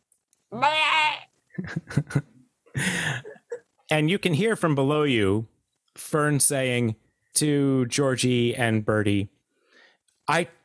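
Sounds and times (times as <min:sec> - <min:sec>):
speech: 0:00.5 - 0:00.8, 0:01.6 - 0:03.1, 0:03.9 - 0:09.4, 0:10.3 - 0:10.6
person imitating baby bleats: 0:00.5 - 0:01.3.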